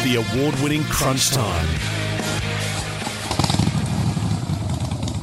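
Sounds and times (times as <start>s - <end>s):
speech: 0.2s - 2.0s
Harley-Davidson motorcycle engine revving: 2.0s - 5.2s.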